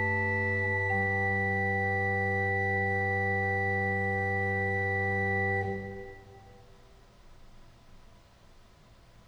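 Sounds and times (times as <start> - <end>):
organ fugue: 0.0 - 6.7.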